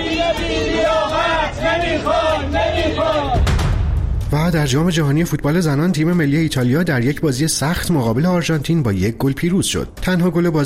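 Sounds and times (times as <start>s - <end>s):
Esteghlal football fans chanting protest slogans against club management outside the club building: 0.0s - 3.6s
speech: 4.3s - 10.6s.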